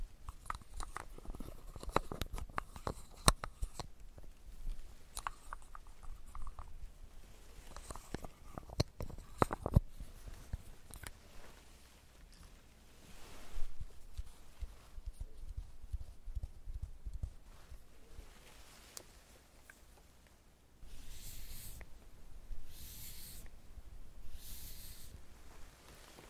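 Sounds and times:
makeup tools clicking, tapping and scraping: 0:00.2 - 0:06.8, 0:07.7 - 0:11.2, 0:13.8 - 0:17.9, 0:20.8 - 0:21.9, 0:22.6 - 0:23.6
hissing bursts: 0:24.3 - 0:25.2.

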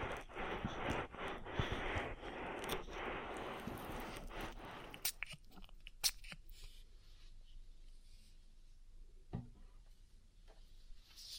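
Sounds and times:
oil ear massage rubbing and squishing: 0:00.0 - 0:07.6.

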